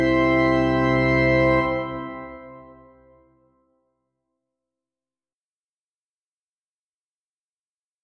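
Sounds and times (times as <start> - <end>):
organ: 0.0 - 3.2.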